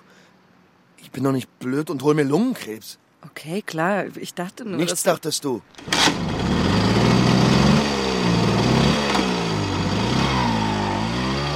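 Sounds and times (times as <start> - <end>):
speech: 1.1 - 6.6
moped riding in circles on a market square: 5.8 - 11.5.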